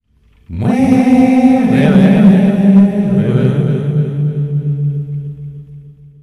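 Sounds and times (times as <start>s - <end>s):
person wailing: 0.5s - 4.0s.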